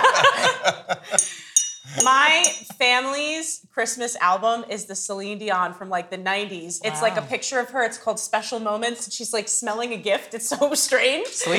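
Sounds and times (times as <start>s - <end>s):
laughter: 0.0s - 3.0s, 6.8s - 7.4s, 10.5s - 11.5s
clinking a wine glass: 0.0s - 3.2s
speech: 2.0s - 11.5s.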